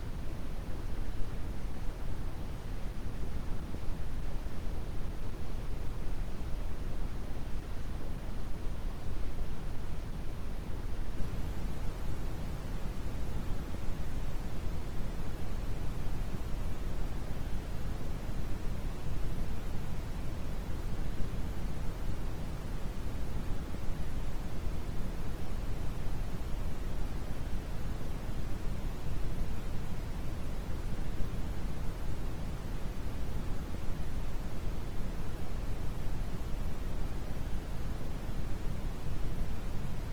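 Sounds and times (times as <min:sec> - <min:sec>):
quiet brown noise: 0:00.0 - 0:40.1.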